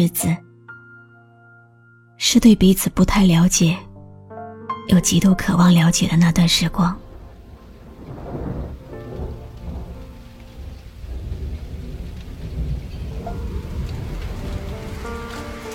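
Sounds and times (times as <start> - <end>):
speech: 0.0 - 0.4, 2.2 - 3.9, 4.9 - 7.0
steady rainfall: 5.4 - 15.7
low thunder rumbling: 5.5 - 15.7.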